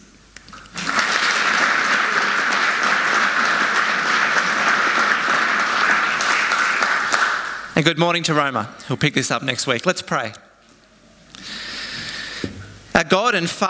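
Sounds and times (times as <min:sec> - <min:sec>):
audience applause: 0:00.7 - 0:07.8
speech: 0:07.8 - 0:10.4, 0:13.0 - 0:13.6.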